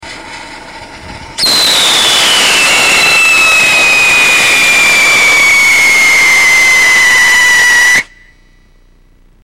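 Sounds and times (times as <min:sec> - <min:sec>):
potassium dichromate rocket whistle tests: 0:01.4 - 0:08.7.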